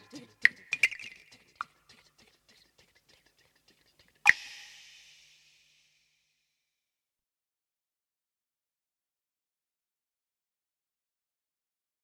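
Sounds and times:
pipa: 0.0s - 5.9s.

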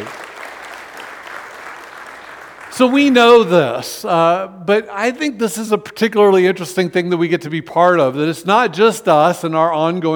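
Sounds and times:
audience applause: 0.0s - 3.1s
speech: 2.8s - 10.1s.

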